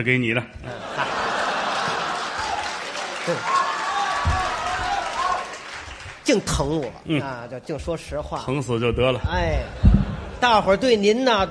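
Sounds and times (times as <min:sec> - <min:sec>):
speech: 0:00.0 - 0:01.2, 0:03.2 - 0:03.6, 0:06.3 - 0:11.4
laughter: 0:00.6 - 0:03.9, 0:09.1 - 0:11.4
audience applause: 0:00.9 - 0:06.8.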